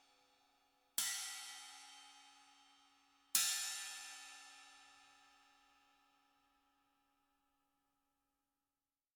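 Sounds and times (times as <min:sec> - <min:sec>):
18 China cymbal played with birch rutes: 0:01.0 - 0:05.3.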